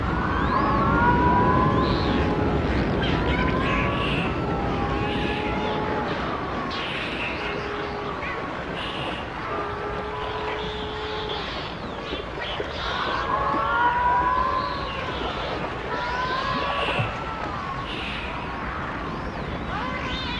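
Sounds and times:
dolphin whistles: 0.1 - 20.3.

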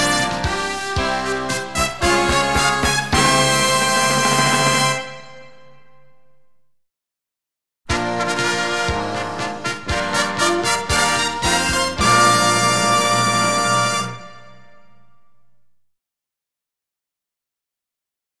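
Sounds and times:
glamorous fanfare: 0.0 - 5.5, 7.9 - 14.8.

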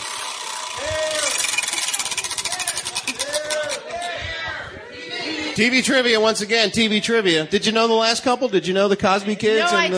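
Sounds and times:
prize wheel pointer ticking: 0.0 - 4.0
speech: 5.6 - 9.9.

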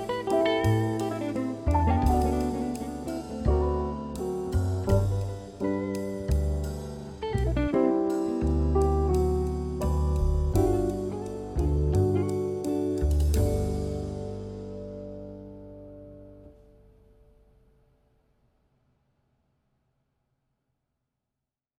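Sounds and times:
background jazz music: 0.0 - 16.6.

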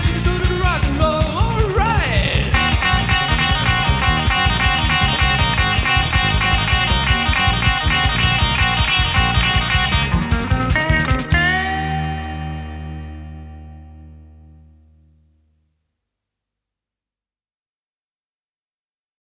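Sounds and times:
guitar: 0.0 - 15.3.

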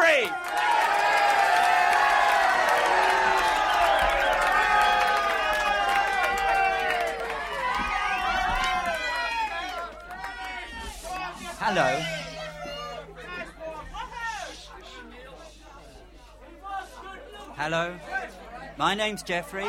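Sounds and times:
crowd clapping: 0.0 - 13.1
crowd cheering and whooping: 0.0 - 15.1
speech: 17.7 - 18.1, 18.8 - 19.6.

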